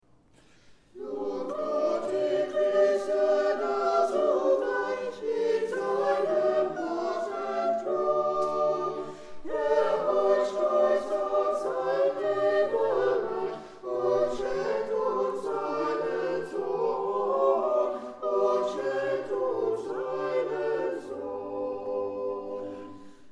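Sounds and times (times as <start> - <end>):
chorale: 0.0 - 23.3.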